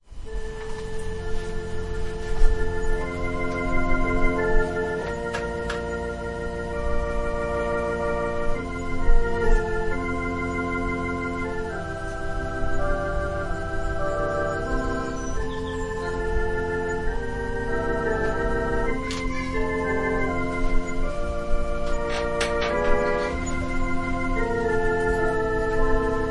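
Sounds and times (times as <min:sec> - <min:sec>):
organ prelude: 0:00.0 - 0:26.2.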